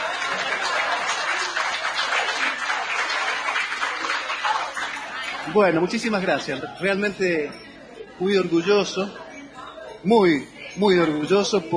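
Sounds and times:
audience applause: 0.0s - 5.7s
laughter: 0.0s - 7.7s, 10.6s - 11.7s
speech: 5.5s - 7.6s, 8.2s - 9.2s, 10.0s - 11.7s.

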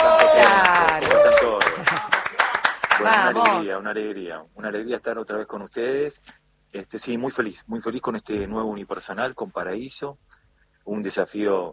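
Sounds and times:
audience applause: 0.0s - 3.6s
speech: 3.0s - 10.3s, 10.9s - 11.7s.

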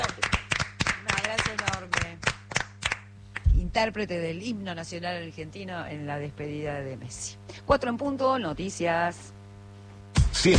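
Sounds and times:
applause in the studio: 0.0s - 3.5s
speech: 3.8s - 9.4s.

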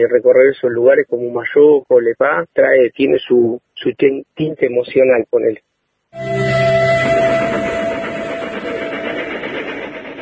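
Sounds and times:
speech: 0.0s - 7.7s
narrow-gauge steam train whistle: 6.2s - 10.2s.

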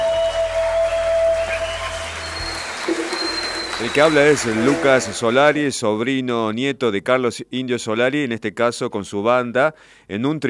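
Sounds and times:
audience applause at a concert: 0.0s - 5.6s
speech: 3.8s - 10.4s.

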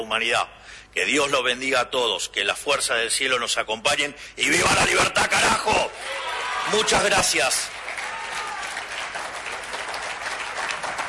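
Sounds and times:
speech: 0.0s - 7.8s
applause: 7.0s - 11.0s.

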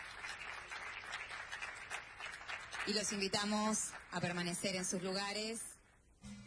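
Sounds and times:
audience applause: 0.0s - 4.1s
speech: 2.8s - 5.7s.

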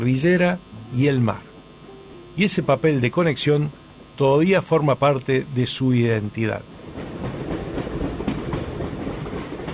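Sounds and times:
speech: 0.0s - 1.5s, 2.4s - 6.7s
train rolling along railway tracks: 6.7s - 9.7s
wheels clacking over rail joints: 6.9s - 9.7s.

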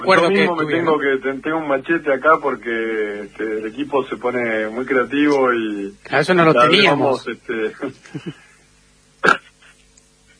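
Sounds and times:
speech: 0.0s - 8.4s
loud sharp sneeze: 9.2s - 9.6s.

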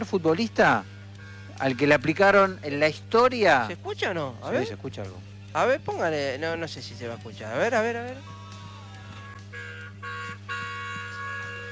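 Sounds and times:
speech: 0.1s - 0.9s, 1.6s - 8.3s
car horn honking: 1.2s - 2.1s, 9.1s - 11.6s.

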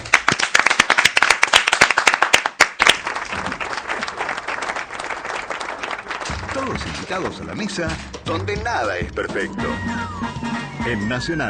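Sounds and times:
audience applause: 0.0s - 7.6s
speech: 6.7s - 11.4s.

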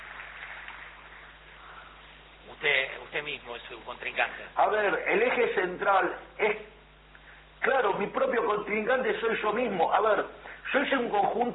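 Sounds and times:
audience applause: 0.0s - 1.7s
speech: 2.6s - 6.8s, 7.6s - 11.5s.

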